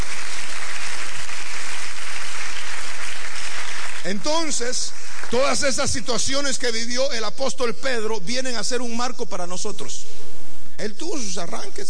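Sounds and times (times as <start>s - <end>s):
audience clapping: 0.0s - 6.2s
speech: 4.0s - 10.2s, 10.8s - 11.8s.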